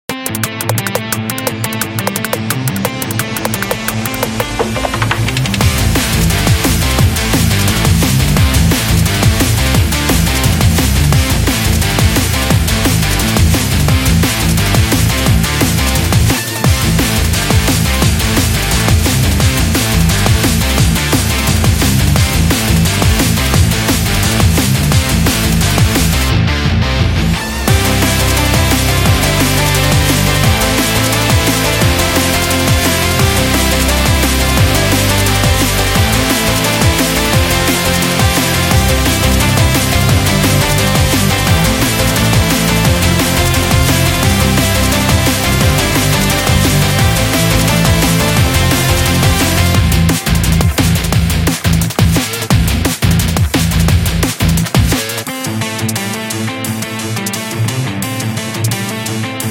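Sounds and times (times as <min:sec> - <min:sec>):
sports rock music: 0:00.0 - 0:59.4.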